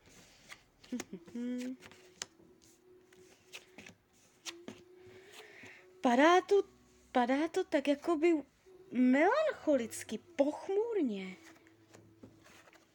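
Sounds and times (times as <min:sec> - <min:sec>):
tarot cards being turned over: 0:00.0 - 0:05.7, 0:11.4 - 0:12.9
speech: 0:00.9 - 0:02.0, 0:06.0 - 0:11.5.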